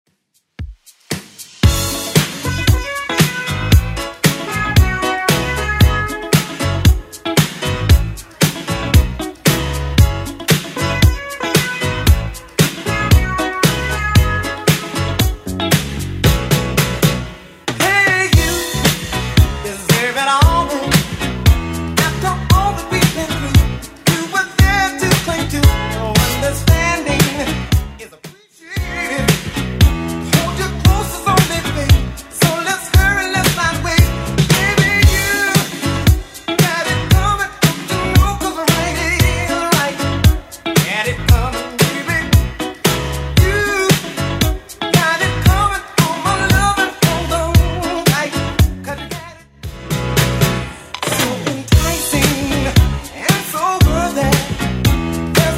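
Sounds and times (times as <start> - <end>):
70s Redrum drum machine beat: 0.3 - 48.9, 49.6 - 55.5.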